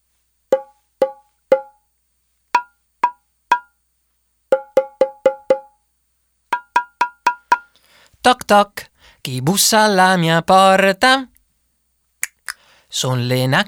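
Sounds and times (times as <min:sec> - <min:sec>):
drum struck in short sharp beats: 0:00.5 - 0:01.8, 0:02.6 - 0:03.7, 0:04.5 - 0:05.8, 0:06.5 - 0:07.8
speech: 0:08.2 - 0:11.3, 0:12.9 - 0:13.6.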